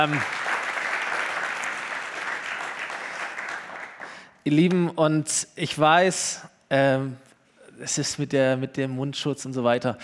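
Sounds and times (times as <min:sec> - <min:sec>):
speech: 0:00.0 - 0:00.4, 0:04.4 - 0:10.0
audience applauding the band: 0:00.0 - 0:04.2.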